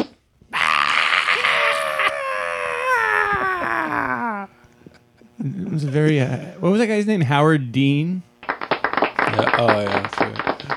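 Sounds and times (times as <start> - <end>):
person screaming: 0.5 - 4.6
speech: 5.4 - 8.3, 9.4 - 10.4.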